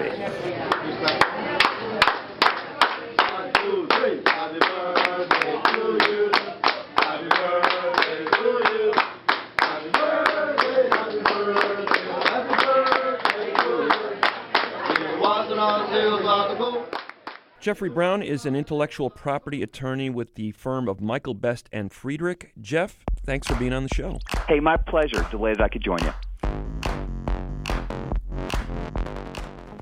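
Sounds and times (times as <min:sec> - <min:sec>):
restaurant staff rhythmic hand claps: 0:00.7 - 0:15.1, 0:23.2 - 0:29.8
restaurant staff singing birthday song in unison: 0:03.4 - 0:09.0, 0:09.6 - 0:16.9
speech: 0:17.6 - 0:26.2.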